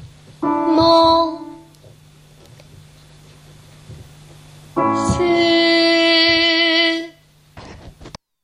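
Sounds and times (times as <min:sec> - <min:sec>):
alto voice singing second voice part: 0:00.4 - 0:01.7, 0:04.8 - 0:07.2.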